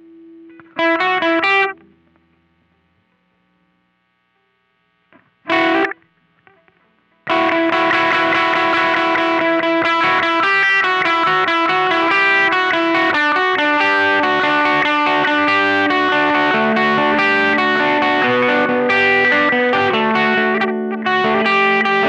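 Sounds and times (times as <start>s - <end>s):
slow riff: 5.5s - 6.6s, 7.3s - 22.0s.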